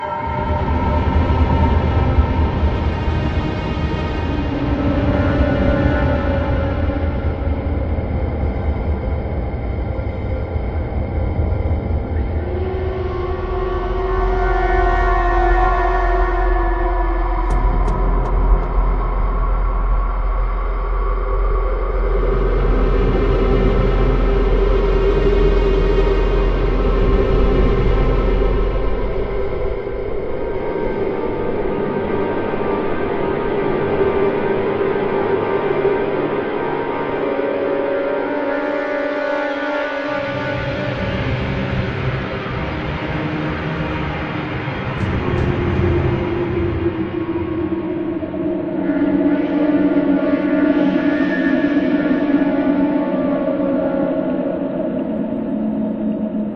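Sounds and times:
tension ambient music: 0.0s - 56.5s.

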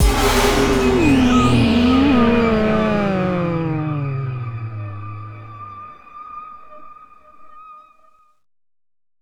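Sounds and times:
music sting: 0.0s - 7.5s.

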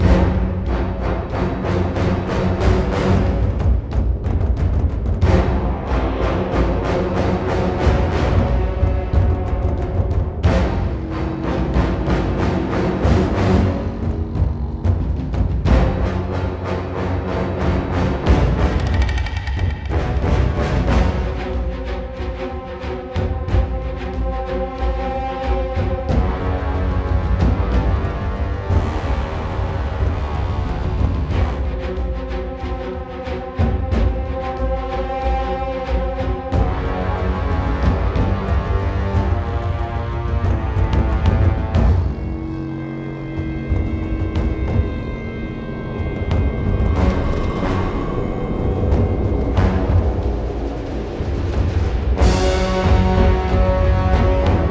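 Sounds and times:
frantic boss fight stage music: 0.0s - 54.6s.

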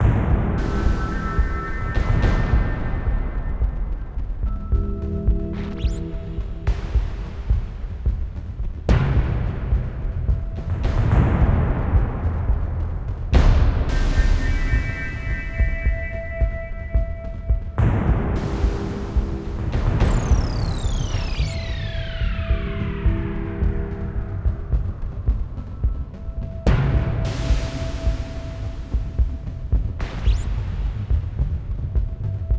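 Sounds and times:
tension music: 0.0s - 32.5s.

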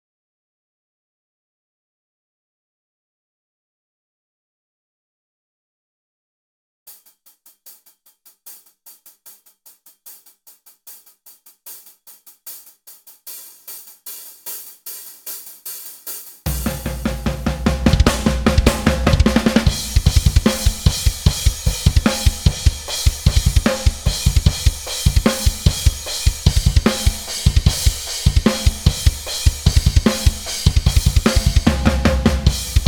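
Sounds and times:
drums: 6.9s - 32.8s.

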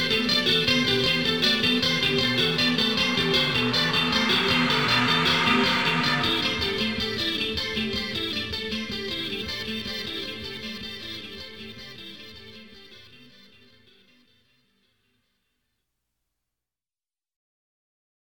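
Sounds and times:
four guitars: 0.0s - 14.4s.

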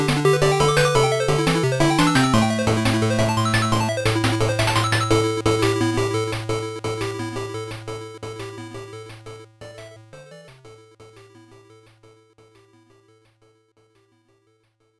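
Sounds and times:
background music: 0.0s - 7.8s.

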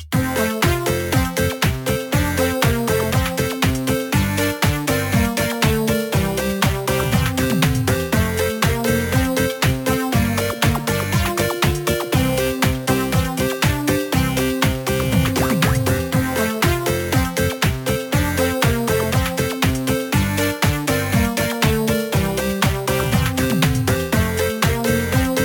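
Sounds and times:
8-bit mini-game music: 0.1s - 25.4s.

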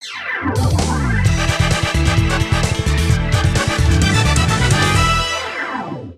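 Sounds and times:
victory background music: 0.6s - 5.9s.

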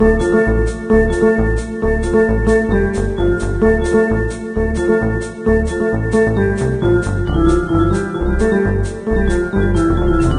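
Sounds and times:
spaceship music: 0.0s - 10.3s.

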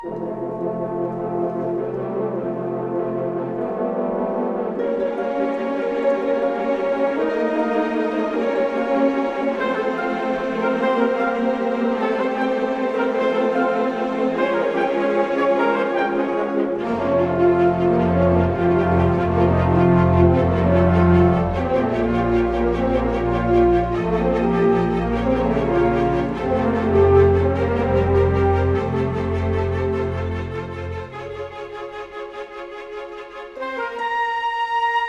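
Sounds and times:
music: 0.0s - 35.0s.

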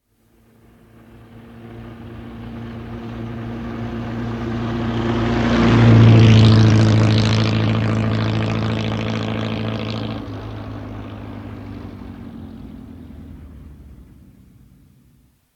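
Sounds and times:
car speeding past: 0.4s - 15.5s.

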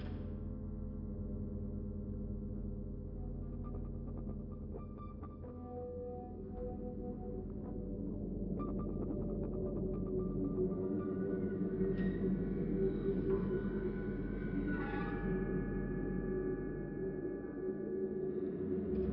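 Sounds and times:
mine tension music: 0.2s - 19.1s.

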